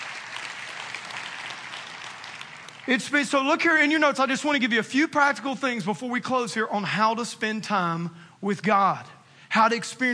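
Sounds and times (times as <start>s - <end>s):
audience applause: 0.0s - 3.1s
speech: 2.9s - 10.1s.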